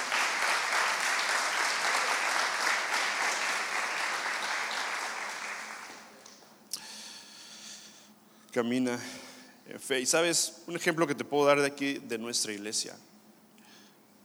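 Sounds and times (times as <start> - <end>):
audience applause: 0.0 - 6.6
speech: 8.6 - 13.1.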